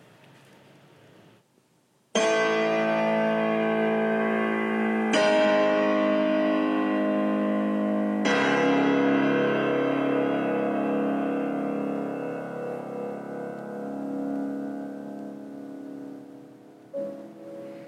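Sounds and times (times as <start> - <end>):
piano bass notes: 2.2 - 17.8.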